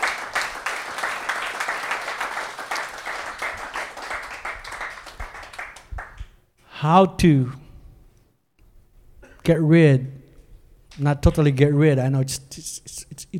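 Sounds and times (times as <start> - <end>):
audience applause: 0.0 - 6.2
speech: 6.8 - 7.6, 9.5 - 10.2, 11.0 - 13.3.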